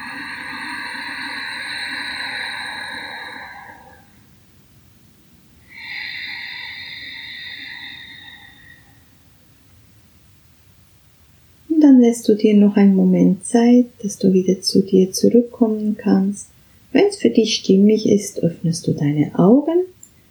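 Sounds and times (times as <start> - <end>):
Ujjayi breathing: 0.0 - 4.4, 5.6 - 9.8
speech: 12.0 - 19.9.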